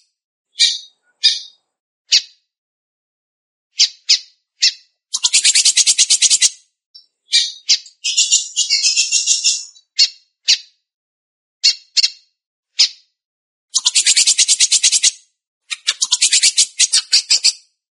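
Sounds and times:
Belgian canary singing fast buzzy trills: 0:00.6 - 0:01.5, 0:03.8 - 0:10.1, 0:13.7 - 0:15.1, 0:15.7 - 0:17.5.

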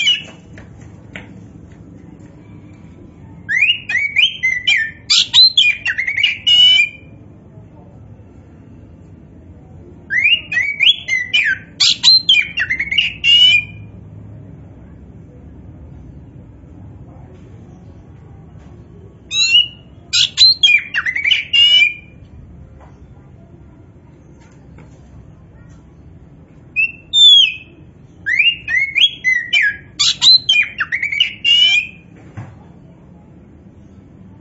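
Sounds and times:
Oriental magpie-robin singing: 0:00.0 - 0:00.4, 0:03.4 - 0:07.1, 0:10.1 - 0:13.9, 0:19.3 - 0:22.2, 0:26.7 - 0:32.0.

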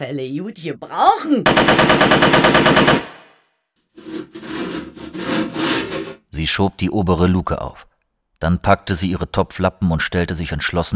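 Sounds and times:
speech: 0:00.0 - 0:03.1, 0:06.4 - 0:10.9
AK-47 automatic fire: 0:01.5 - 0:03.4.

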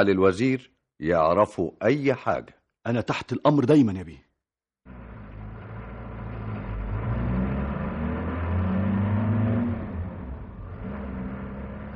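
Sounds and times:
speech: 0:00.0 - 0:05.0
taxi engine revving and driving into an alley: 0:04.9 - 0:11.9.

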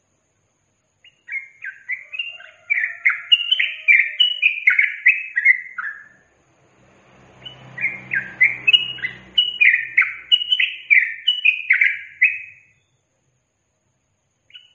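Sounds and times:
yellow-vented bulbul singing: 0:01.0 - 0:13.1, 0:14.3 - 0:14.7.

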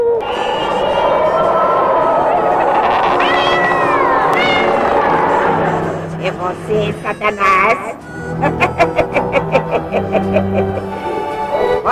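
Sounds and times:
laughter: 0:00.2 - 0:11.4
cat meowing: 0:02.9 - 0:05.3
speech: 0:06.7 - 0:09.0.

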